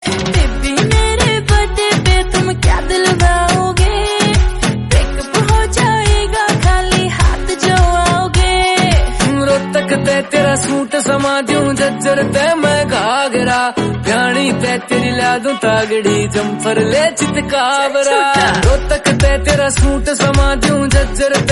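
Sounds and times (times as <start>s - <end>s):
Haryanvi birthday song: 0.1s - 21.5s.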